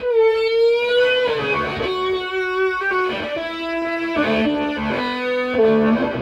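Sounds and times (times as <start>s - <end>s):
snake scream on electric guitar: 0.0s - 6.2s.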